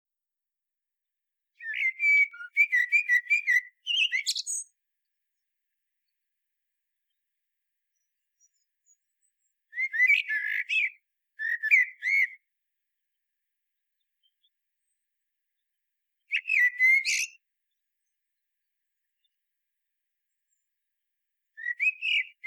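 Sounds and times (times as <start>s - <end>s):
common blackbird singing: 1.6s - 4.8s, 7.9s - 12.4s, 16.3s - 17.4s, 21.6s - 22.4s.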